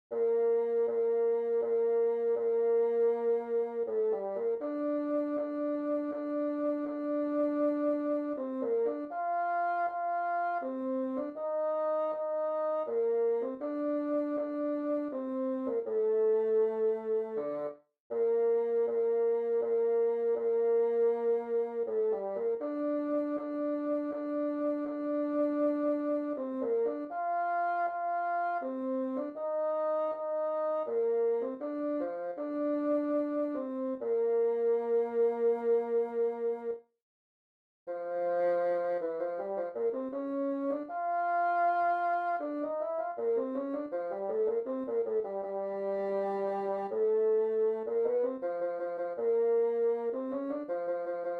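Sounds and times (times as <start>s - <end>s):
bassoon: 0.1s - 36.8s, 37.9s - 51.3s.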